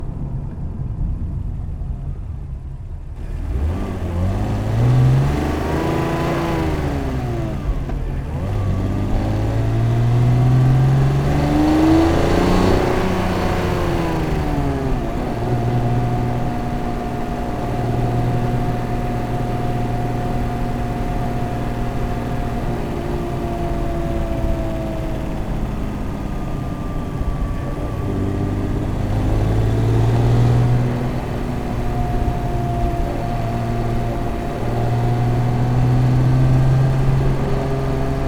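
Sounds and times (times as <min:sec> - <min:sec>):
BMW E46 3 Series car engine accelerating: 0:00.0 - 0:38.2.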